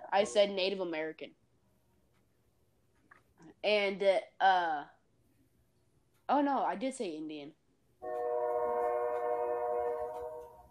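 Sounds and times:
speech: 0:00.1 - 0:01.4, 0:03.4 - 0:05.0, 0:06.3 - 0:08.2
train passing nearby: 0:08.0 - 0:10.7.

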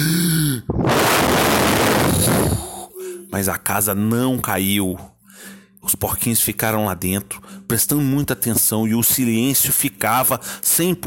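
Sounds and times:
storyteller imitating the big bad wolf blowing hard: 0:00.0 - 0:03.3
speech: 0:03.4 - 0:05.1, 0:05.8 - 0:11.0.

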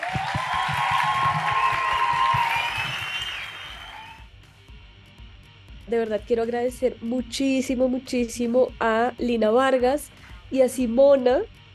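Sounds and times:
audience applause: 0:00.0 - 0:04.2
speech: 0:05.9 - 0:11.6.

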